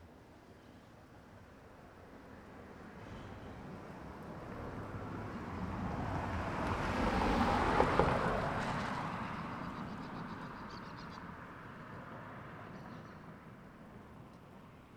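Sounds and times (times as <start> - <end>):
gentle wind: 0.0 - 14.9
cars passing one after another: 3.6 - 12.7
birds: 9.3 - 11.4.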